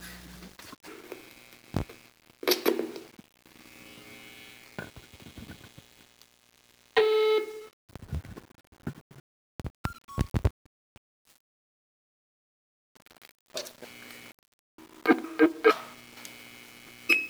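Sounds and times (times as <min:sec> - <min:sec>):
amplifier: 0:00.0 - 0:07.7, 0:13.6 - 0:17.2.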